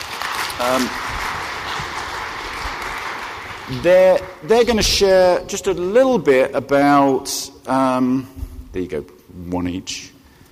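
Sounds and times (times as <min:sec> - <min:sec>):
audience applause: 0:00.0 - 0:04.8
speech: 0:00.6 - 0:01.3, 0:03.7 - 0:10.1.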